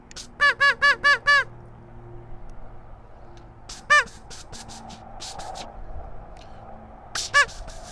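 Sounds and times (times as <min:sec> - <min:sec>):
duck call quacking: 0:00.2 - 0:01.5, 0:03.7 - 0:05.4, 0:07.2 - 0:07.9.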